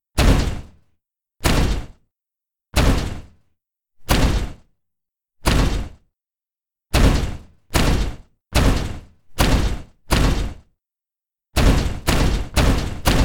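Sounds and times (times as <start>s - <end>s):
heavy robot footsteps: 0.2s - 0.8s, 1.4s - 2.0s, 2.8s - 3.4s, 4.1s - 4.6s, 5.4s - 6.0s, 6.9s - 10.7s, 11.6s - 13.2s.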